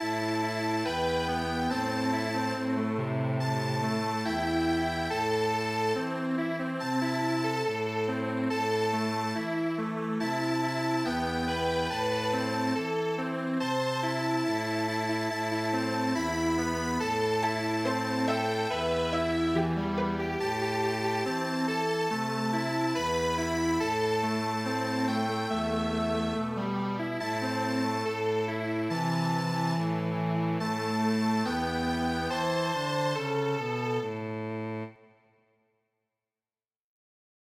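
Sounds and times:
strings: 0.0s - 35.1s.

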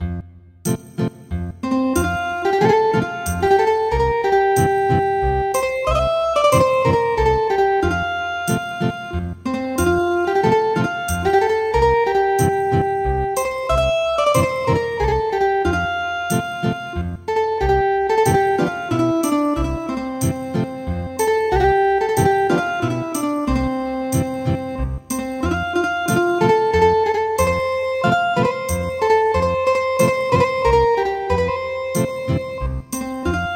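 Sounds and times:
ethnic guitar music: 0.0s - 33.5s.

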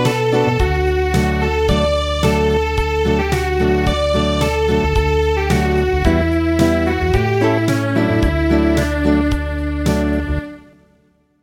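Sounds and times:
traditional acoustic village dance music: 0.0s - 10.4s.

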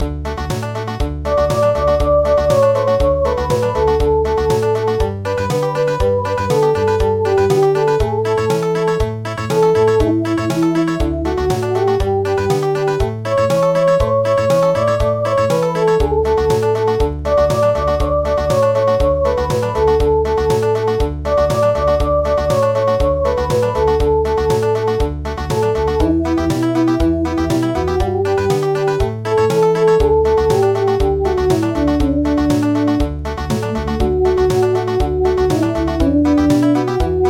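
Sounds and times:
country midi music: 0.0s - 37.2s.

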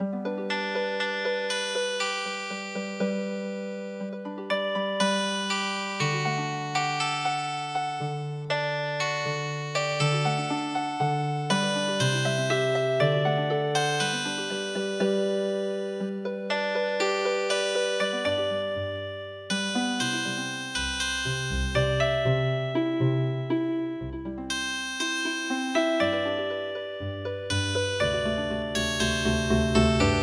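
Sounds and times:
traditional healing harp music: 0.0s - 3.3s, 3.9s - 30.2s.

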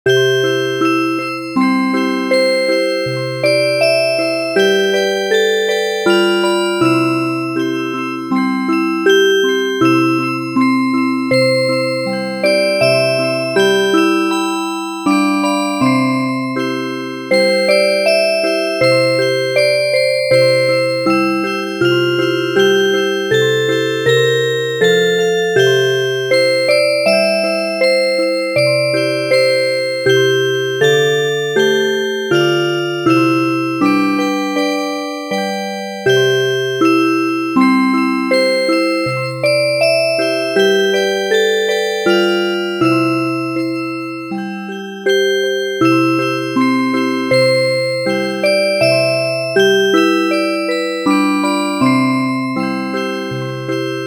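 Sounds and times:
music box: 0.1s - 54.0s.

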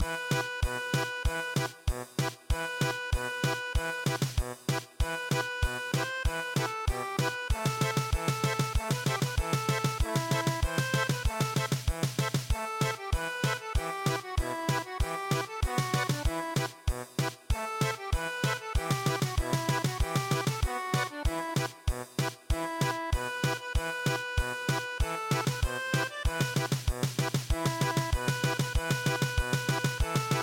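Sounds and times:
German polka music: 0.0s - 30.4s.

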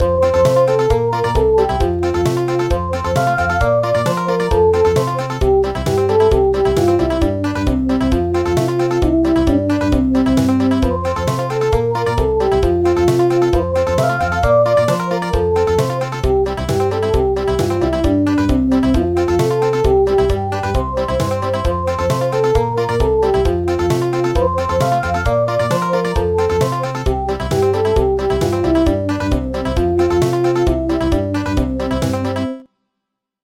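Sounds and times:
country music: 0.0s - 32.6s.

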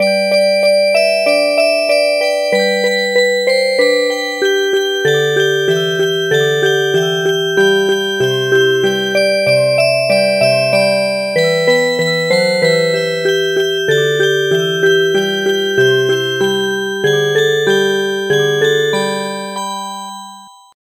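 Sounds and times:
music box: 0.0s - 20.8s.

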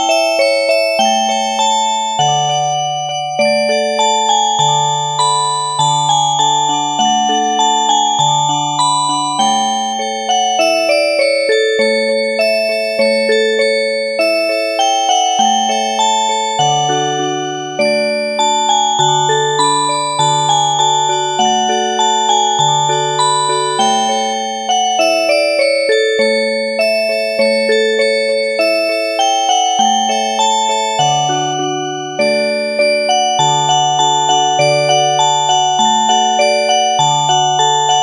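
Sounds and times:
oberek on a music box: 0.0s - 38.0s.

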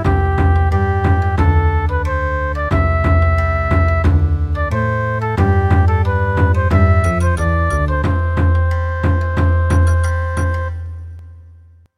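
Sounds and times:
traditional Japanese Bon Odori music: 0.0s - 11.6s.

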